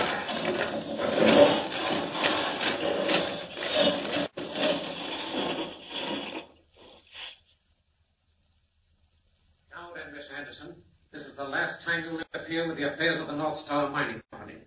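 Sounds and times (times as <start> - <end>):
radio-drama effect of a vehicle boring through solid rock: 0.0 - 7.3
speech: 12.0 - 14.2.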